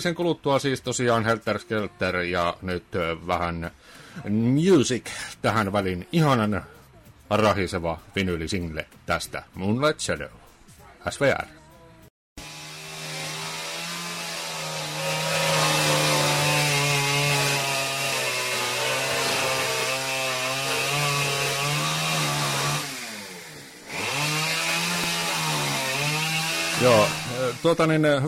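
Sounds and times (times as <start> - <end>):
speech: 0.0 - 10.4, 11.0 - 11.6, 26.8 - 28.2
chainsaw tearing into a wall outside: 12.4 - 28.2.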